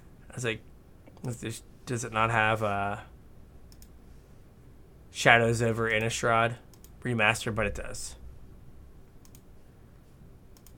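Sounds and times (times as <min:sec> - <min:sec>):
speech: 0:00.4 - 0:03.1, 0:05.1 - 0:08.2
computer mouse double-clicking: 0:03.7 - 0:04.0, 0:06.7 - 0:07.0, 0:09.2 - 0:09.5, 0:10.5 - 0:10.7.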